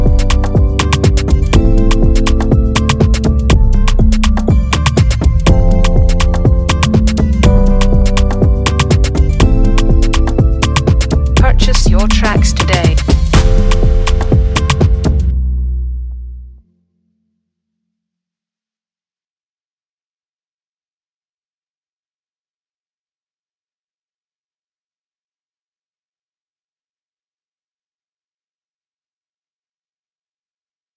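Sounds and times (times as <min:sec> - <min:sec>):
afrobeat instrumental music: 0:00.0 - 0:16.4.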